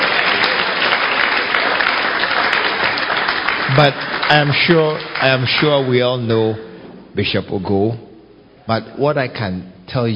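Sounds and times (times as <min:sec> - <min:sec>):
audience clapping: 0:00.0 - 0:06.6
speech: 0:03.8 - 0:08.1, 0:08.7 - 0:10.1.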